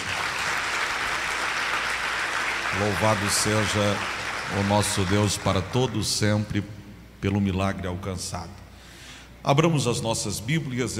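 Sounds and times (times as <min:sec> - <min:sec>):
audience applause: 0:00.0 - 0:06.0
speech: 0:02.8 - 0:08.6, 0:09.4 - 0:10.9.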